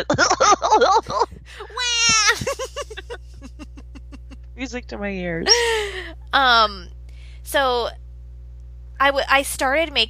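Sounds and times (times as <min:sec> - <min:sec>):
speech: 0:00.0 - 0:01.7, 0:04.6 - 0:08.0, 0:09.0 - 0:10.0
laughter: 0:00.0 - 0:04.4, 0:05.5 - 0:06.1
baby screaming: 0:01.8 - 0:02.6.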